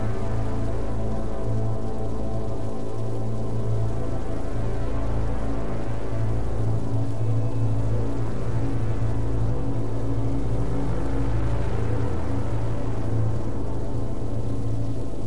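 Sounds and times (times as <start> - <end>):
prominent low drone: 0.0 - 15.2.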